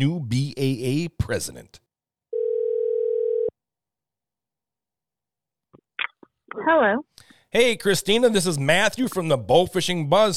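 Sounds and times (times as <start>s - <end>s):
speech: 0.0s - 1.8s, 6.5s - 10.3s
telephone ringing tone while calling: 2.3s - 3.5s.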